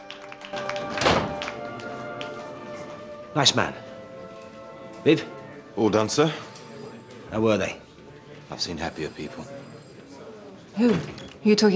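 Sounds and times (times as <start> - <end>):
door thunking shut: 1.0 - 1.4
speech: 3.4 - 3.9, 5.0 - 6.5, 7.3 - 7.8, 8.5 - 9.9, 10.8 - 11.7.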